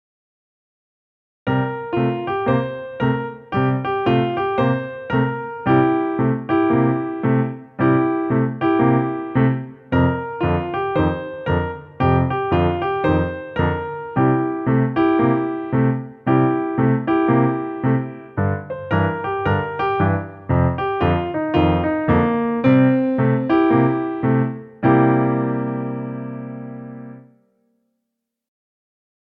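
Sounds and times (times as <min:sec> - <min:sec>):
blues music: 0:01.5 - 0:27.0.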